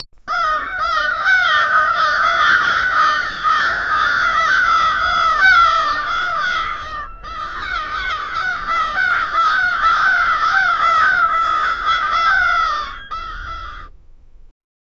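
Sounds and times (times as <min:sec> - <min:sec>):
big crows: 0:00.3 - 0:13.9.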